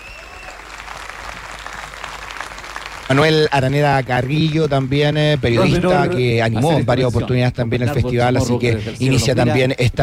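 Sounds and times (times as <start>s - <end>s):
large audience applauding in memory: 0.0s - 6.3s
speech: 3.1s - 10.0s.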